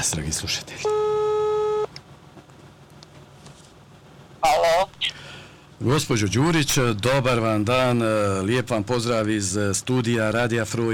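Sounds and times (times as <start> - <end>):
speech: 0.0 - 1.3, 5.8 - 10.9
telephone line tone while calling: 0.8 - 1.9.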